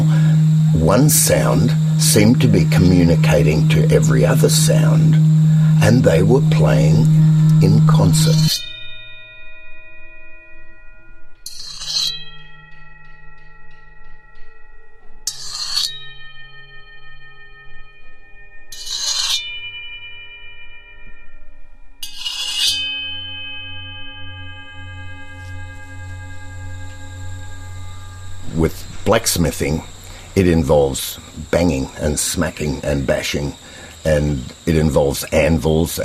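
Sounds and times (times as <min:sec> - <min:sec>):
angle grinder on metal: 0:00.0 - 0:08.9, 0:11.5 - 0:12.5, 0:15.3 - 0:16.4, 0:18.8 - 0:19.5, 0:22.0 - 0:35.4
speech: 0:00.8 - 0:08.7, 0:29.2 - 0:36.0.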